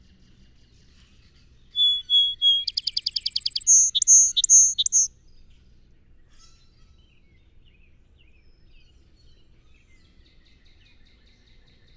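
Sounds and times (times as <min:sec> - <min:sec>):
song sparrow song: 0:01.8 - 0:05.1.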